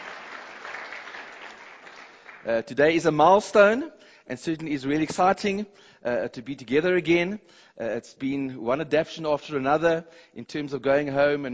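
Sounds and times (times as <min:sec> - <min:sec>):
church congregation clapping: 0:00.0 - 0:02.6
speech: 0:02.4 - 0:11.5.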